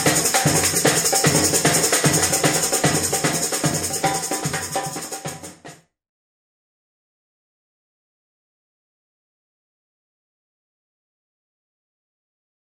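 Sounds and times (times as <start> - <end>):
snare drum: 0.0 - 5.9.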